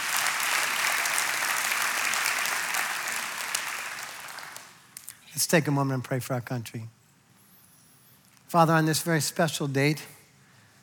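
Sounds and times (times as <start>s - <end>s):
audience applauding: 0.0s - 4.9s
speech: 5.4s - 7.0s, 8.5s - 10.2s.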